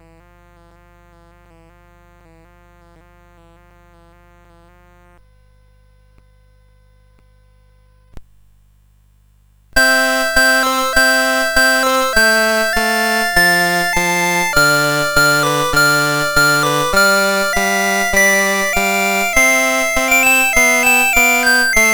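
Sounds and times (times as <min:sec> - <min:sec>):
CSG8580 chip synthesizer piece: 0:09.8 - 0:21.9.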